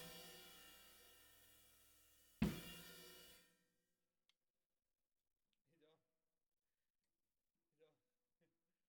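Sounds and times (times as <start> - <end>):
snare drum: 2.4 - 3.4.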